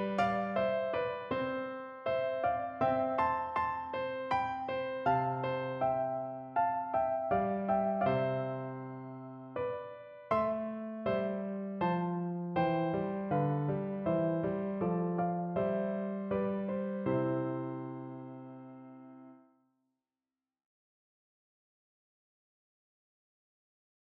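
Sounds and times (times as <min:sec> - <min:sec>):
dance piano music: 0:00.0 - 0:19.0.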